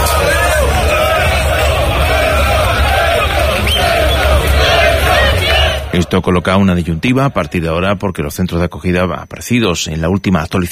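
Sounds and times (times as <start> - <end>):
crowd shouting chants in support: 0.0 - 7.7
speech: 6.1 - 10.6.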